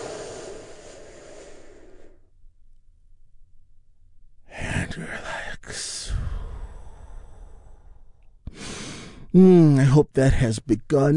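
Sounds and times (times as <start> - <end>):
deep slow breath during a relaxation exercise: 0.0 - 2.4, 5.4 - 9.3
speech: 5.0 - 6.0, 9.3 - 11.1.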